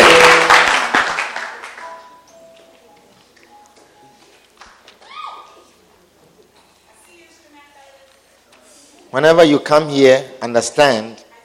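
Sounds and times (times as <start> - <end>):
audience clapping hands: 0.0 - 2.1, 4.6 - 5.0
speech: 9.2 - 11.2.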